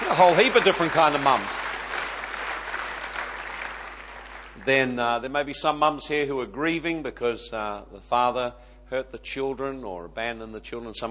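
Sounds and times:
audience applause: 0:00.0 - 0:04.7
speech: 0:00.2 - 0:01.6, 0:04.7 - 0:11.1.

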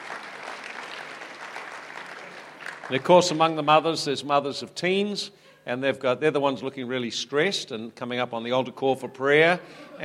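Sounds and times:
audience clapping for mothers: 0:00.0 - 0:03.9
speech: 0:02.9 - 0:10.0.

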